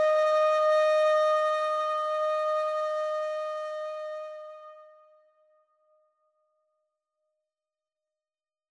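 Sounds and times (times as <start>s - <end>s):
kawala flute solo: 0.0s - 5.1s.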